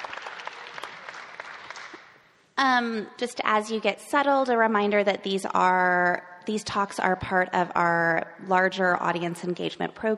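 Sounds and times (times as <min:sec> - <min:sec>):
audience applause: 0:00.0 - 0:02.0
speech: 0:02.6 - 0:10.1.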